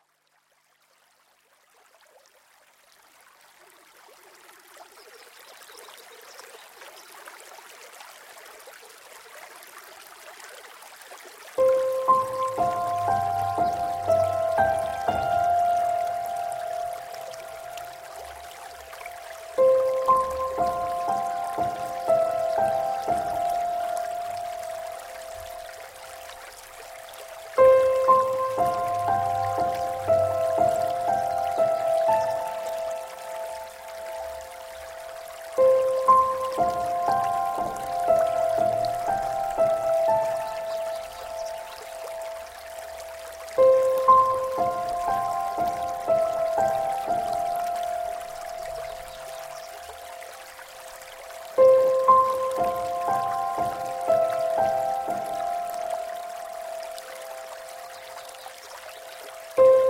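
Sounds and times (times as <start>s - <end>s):
gentle stream flowing: 0.0s - 59.8s
music: 11.6s - 26.1s, 27.4s - 50.1s, 51.5s - 57.8s, 59.5s - 59.8s.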